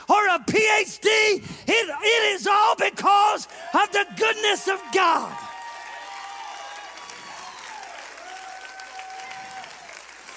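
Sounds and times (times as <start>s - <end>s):
speech: 0.4s - 5.4s
audience clapping: 3.3s - 10.3s.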